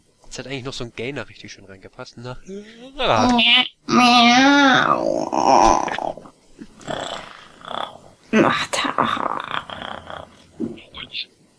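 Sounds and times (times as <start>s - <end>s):
speech: 0.4s - 6.1s
voice imitating a cat purring: 2.9s - 11.2s.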